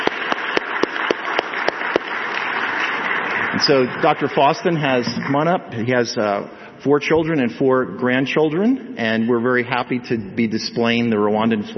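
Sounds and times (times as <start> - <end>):
audience applauding: 0.0 - 5.6
speech: 3.6 - 11.7.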